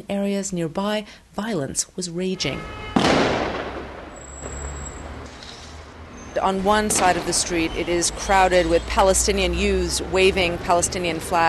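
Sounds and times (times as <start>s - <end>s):
speech: 0.1s - 3.3s, 6.4s - 11.4s
tear gas canister being fired: 3.0s - 3.9s.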